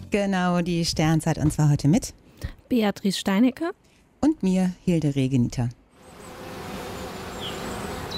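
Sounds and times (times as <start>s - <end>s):
speech: 0.1s - 5.8s
honeybees buzzing at an apiary: 6.0s - 8.1s.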